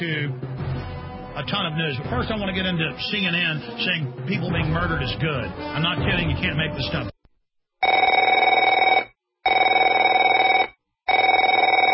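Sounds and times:
speech: 0:00.0 - 0:07.2
telephone ringing: 0:07.8 - 0:11.9.

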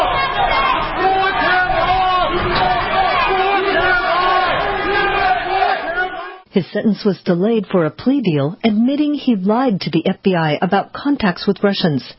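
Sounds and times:
protest crowd chanting and shouting outside courthouse: 0:00.0 - 0:06.6
speech: 0:06.6 - 0:12.1.

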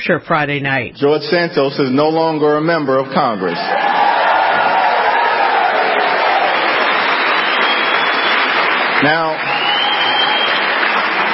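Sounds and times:
speech: 0:00.0 - 0:04.0, 0:09.0 - 0:09.5
audience applause: 0:03.5 - 0:11.3.

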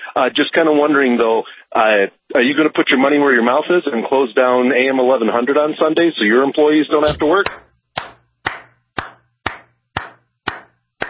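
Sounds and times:
speech: 0:00.2 - 0:07.7
one person clapping hands: 0:07.1 - 0:11.0.

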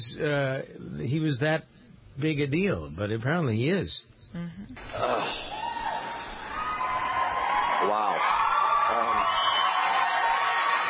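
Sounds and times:
speech: 0:00.0 - 0:05.6, 0:07.8 - 0:09.5
audience clapping: 0:06.1 - 0:10.8.

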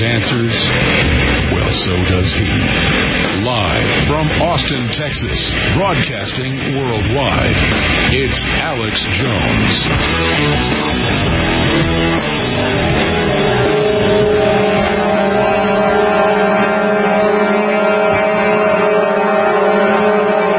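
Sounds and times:
speech: 0:00.2 - 0:13.1
convoy truck and vehicle horns blaring: 0:13.6 - 0:20.5.

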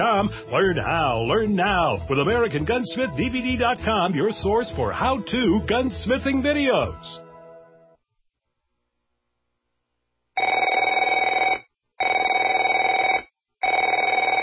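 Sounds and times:
speech: 0:00.2 - 0:07.2
telephone bell ringing: 0:10.4 - 0:14.4.

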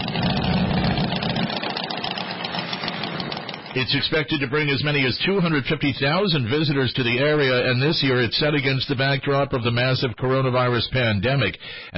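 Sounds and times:
motorcycle engines idling at Sturgis Motorcycle Rally: 0:00.0 - 0:05.5
speech: 0:03.7 - 0:11.9.

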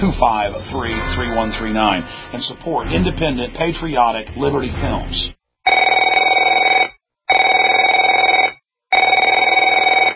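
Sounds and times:
speech: 0:00.0 - 0:05.9
telephone ringing: 0:05.7 - 0:10.1.

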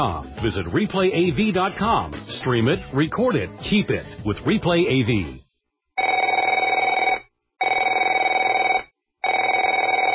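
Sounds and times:
speech: 0:00.0 - 0:05.4
telephone ringing: 0:06.0 - 0:10.1.

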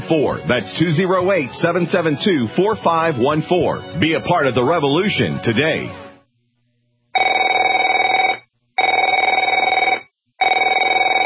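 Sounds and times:
speech: 0:00.1 - 0:06.0
telephone ringing with electronic trill: 0:07.2 - 0:11.2.

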